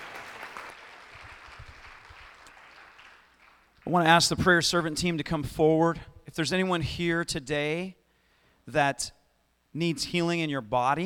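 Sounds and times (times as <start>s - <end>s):
audience applause: 0.0s - 3.8s
speech: 3.9s - 8.0s, 8.7s - 9.2s, 9.8s - 11.0s.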